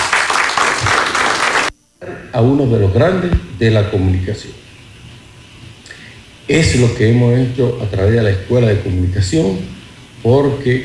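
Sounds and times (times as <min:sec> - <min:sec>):
audience applause: 0:00.0 - 0:01.7
speech: 0:02.1 - 0:04.6, 0:06.5 - 0:10.8.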